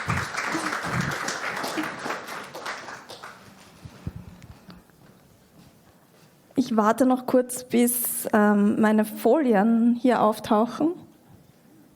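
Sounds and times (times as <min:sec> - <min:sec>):
audience applause: 0:00.0 - 0:03.9
speech: 0:06.7 - 0:11.0.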